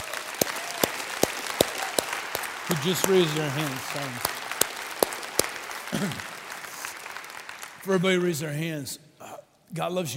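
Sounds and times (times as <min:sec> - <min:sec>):
sharp claps: 0:00.0 - 0:08.1
faint applause at a religious gathering: 0:00.0 - 0:08.5
speech: 0:02.7 - 0:04.4, 0:05.9 - 0:06.3, 0:07.8 - 0:09.0, 0:09.7 - 0:10.1.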